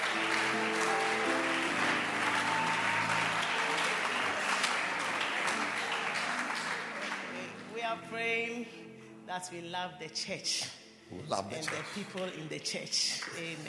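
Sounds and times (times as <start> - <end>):
audience clapping: 0.0 - 7.7, 11.6 - 12.4, 13.2 - 13.6
speech: 8.0 - 13.6.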